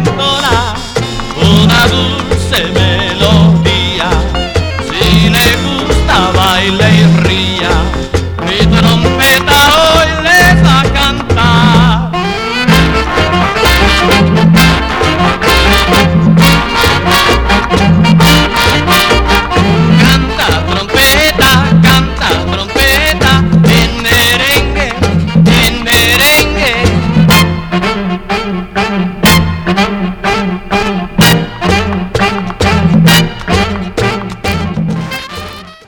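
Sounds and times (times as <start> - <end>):
trumpet playing merengue: 0.0 - 35.8.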